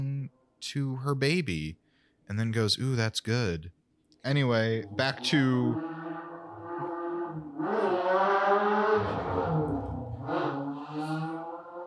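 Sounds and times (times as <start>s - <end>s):
speech: 0.6s - 6.0s
motorcycle engine revving outside an apartment: 4.7s - 11.8s.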